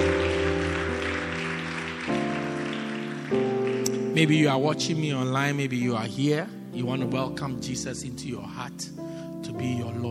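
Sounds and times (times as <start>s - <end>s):
congregation clapping at the close of a church service: 0.0s - 5.4s
speech: 4.2s - 10.1s.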